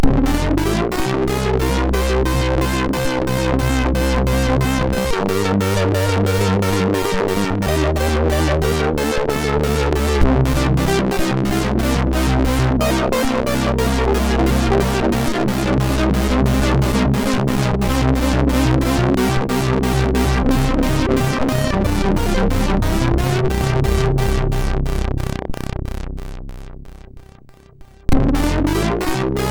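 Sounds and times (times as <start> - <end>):
MOS 6581R2 SID chip music: 0.0 - 29.4.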